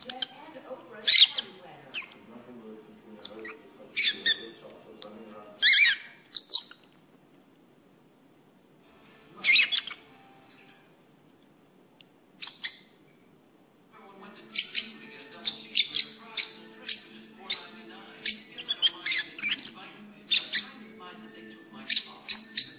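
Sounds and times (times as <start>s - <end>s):
faint low hum: 0.0s - 22.7s
lovebird chirping shrilly: 3.4s - 4.5s, 5.6s - 6.8s, 9.4s - 10.1s, 12.4s - 13.0s, 14.5s - 20.9s.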